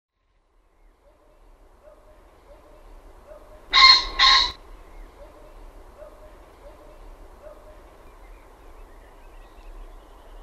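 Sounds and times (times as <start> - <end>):
common pheasant crowing: 1.8 - 7.9.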